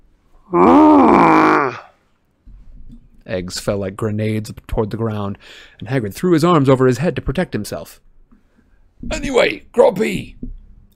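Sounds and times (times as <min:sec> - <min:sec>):
speech: 0:00.5 - 0:00.8, 0:03.4 - 0:08.1, 0:09.0 - 0:10.5
person imitating a giant's roar of displeasure: 0:00.5 - 0:01.9.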